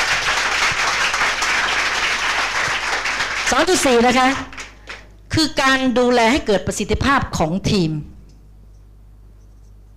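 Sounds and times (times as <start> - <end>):
audience applause: 0.0 - 5.0
speech: 3.5 - 4.5, 5.3 - 8.1.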